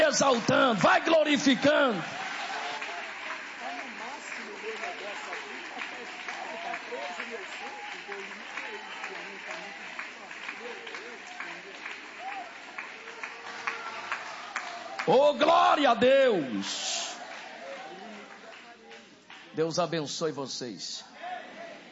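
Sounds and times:
voices calling and cheering: 0.0s - 18.6s
audience applause: 0.0s - 19.5s
speech: 0.2s - 2.2s, 15.1s - 16.9s, 19.6s - 21.1s.

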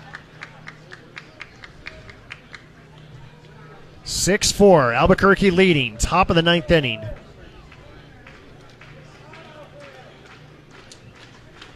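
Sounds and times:
crowd clapping hands in unison: 0.0s - 2.7s, 6.8s - 11.7s
speech: 4.2s - 7.2s.

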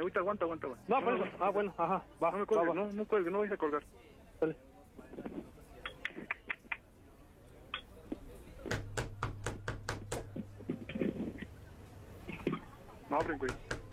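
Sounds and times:
speech: 0.0s - 5.2s, 13.2s - 13.7s
faint murmuring voices: 0.0s - 13.9s
knocking on a door: 8.7s - 10.4s, 13.2s - 13.9s.

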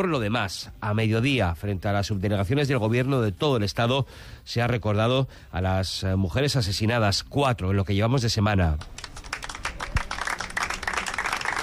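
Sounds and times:
speech: 0.0s - 9.2s
applause ending minute of silence in Bilbao: 8.8s - 11.6s.

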